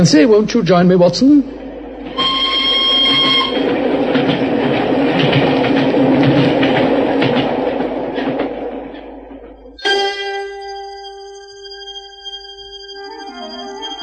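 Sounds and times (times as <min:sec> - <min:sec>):
speech: 0:00.0 - 0:02.2
train carriage thundering past: 0:00.0 - 0:11.2
high whistle tone: 0:02.2 - 0:03.8, 0:09.8 - 0:14.0.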